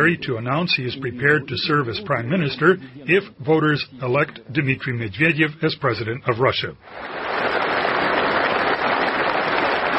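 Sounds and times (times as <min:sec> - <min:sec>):
speech: 0:00.0 - 0:07.2
polite applause: 0:06.9 - 0:09.9.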